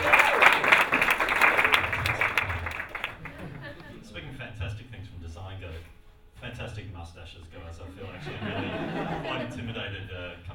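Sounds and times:
audience applause: 0.0s - 4.0s
laughter: 1.6s - 4.4s, 7.8s - 10.0s.

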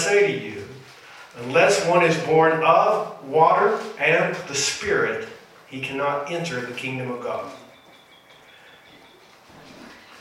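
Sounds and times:
speech: 0.0s - 0.6s, 1.4s - 7.6s
soft noise: 0.0s - 10.1s
birds singing outdoors: 7.2s - 10.1s.

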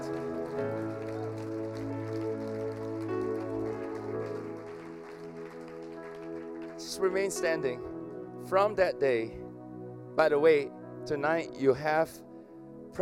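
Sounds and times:
audience applauding: 0.0s - 7.8s
loud sustained musical chords: 0.0s - 13.0s
speech: 7.0s - 7.9s, 8.5s - 9.4s, 10.2s - 12.3s.

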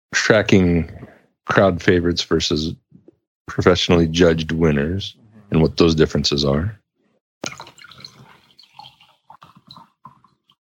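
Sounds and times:
speech: 0.2s - 2.8s, 3.5s - 6.8s, 7.4s - 7.7s
beer pouring into a glass: 7.4s - 10.6s.

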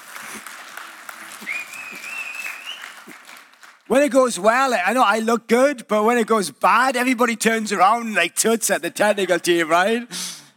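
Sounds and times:
audience applause: 0.0s - 3.9s
speech: 3.9s - 10.4s.

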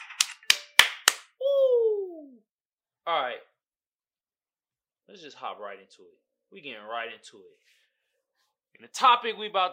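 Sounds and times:
hand clap sound effect: 0.1s - 1.3s
speech: 3.1s - 3.5s, 5.1s - 7.8s, 8.7s - 9.7s.

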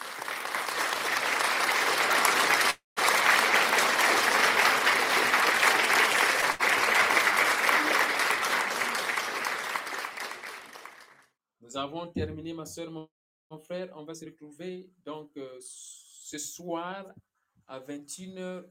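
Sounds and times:
audience applause: 0.0s - 11.2s
speech: 11.8s - 18.7s.

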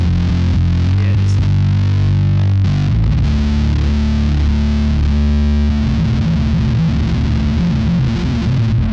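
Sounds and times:
bass guitar through two fuzz pedals: 0.0s - 8.9s.

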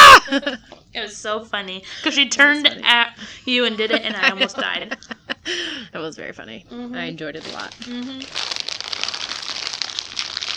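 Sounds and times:
speech: 0.4s - 8.6s
laughter: 3.6s - 5.5s
Cheetos snack bag being rolled up: 7.4s - 10.5s.

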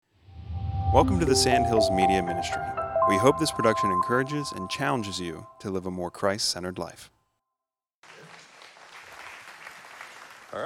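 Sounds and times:
speech: 0.9s - 7.2s
audience applause: 8.0s - 10.6s.

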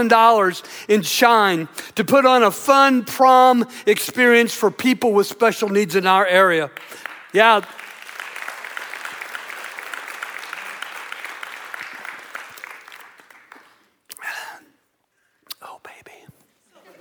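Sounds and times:
speech: 0.0s - 7.8s
audience clapping: 5.1s - 14.0s.

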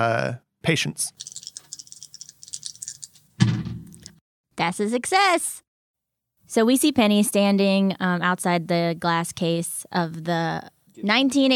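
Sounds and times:
speech: 0.0s - 1.4s, 4.6s - 5.6s, 6.5s - 11.5s
rolling two dice: 1.2s - 3.3s, 3.9s - 4.1s.

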